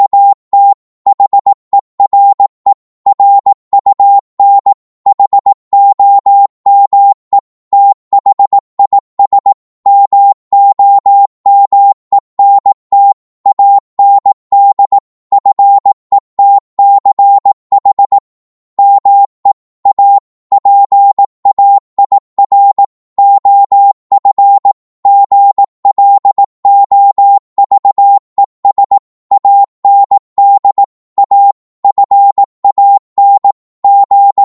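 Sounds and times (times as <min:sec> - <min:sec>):
morse code at 18 words per minute: 0:00.0 - 0:34.4.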